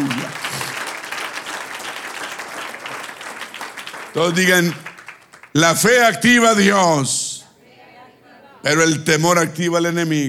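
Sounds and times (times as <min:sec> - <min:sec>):
audience applause: 0:00.0 - 0:05.6
speech: 0:04.2 - 0:04.9, 0:05.5 - 0:07.2, 0:08.6 - 0:10.2.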